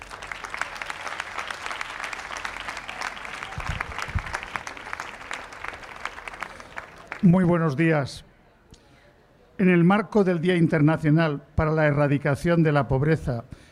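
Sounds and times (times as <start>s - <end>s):
audience applause: 0.0s - 7.4s
speech: 7.2s - 8.3s, 9.6s - 13.6s.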